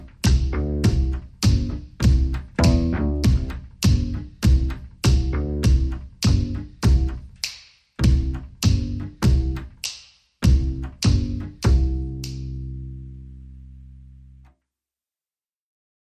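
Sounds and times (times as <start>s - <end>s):
kick drum: 0.0s - 7.4s, 8.0s - 9.8s, 10.4s - 12.1s
bass: 0.0s - 9.8s, 10.4s - 14.5s
snaps: 6.2s - 7.8s, 8.6s - 10.2s, 10.9s - 12.6s.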